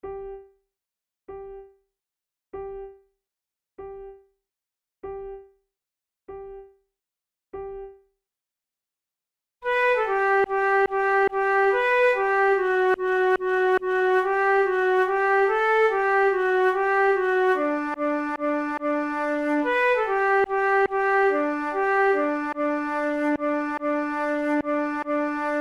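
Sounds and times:
flute duet playing tunes: 9.7s - 25.6s.

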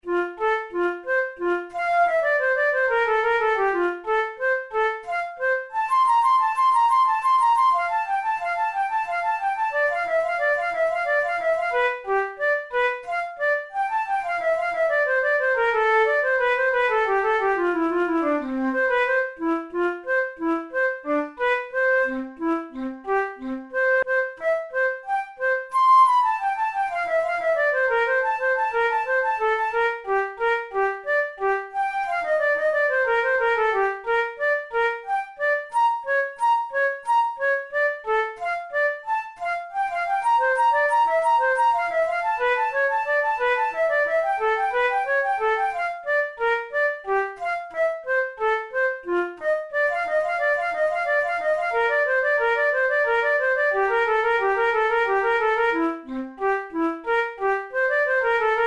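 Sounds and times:
flute in F major: 0.0s - 58.6s.

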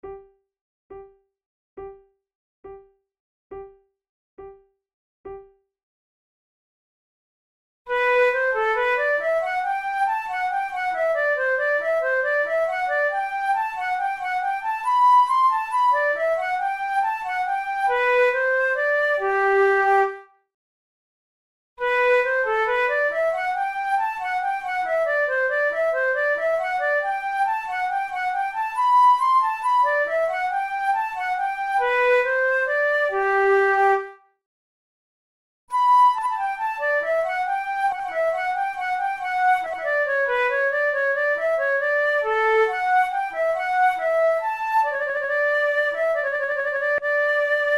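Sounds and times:
flute: 7.9s - 20.3s, 21.8s - 34.2s, 35.7s - 47.7s
musette: 7.9s - 20.3s, 21.8s - 34.2s, 35.7s - 47.7s.

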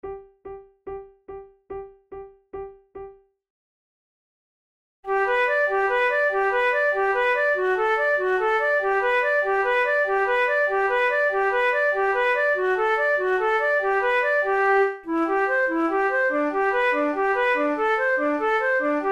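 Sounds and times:
flute duet: 5.1s - 19.0s.

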